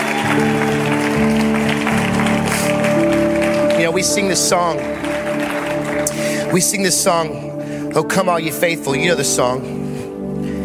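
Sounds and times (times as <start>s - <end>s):
audience clapping and shouting: 0.0s - 7.5s
organ-like chords: 0.0s - 10.6s
speech: 4.0s - 5.2s, 6.5s - 9.8s.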